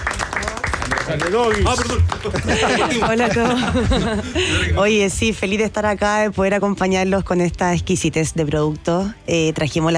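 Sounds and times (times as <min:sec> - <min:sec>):
audience applause: 0:00.0 - 0:03.7
speech: 0:01.1 - 0:09.9
laughter: 0:01.7 - 0:04.8.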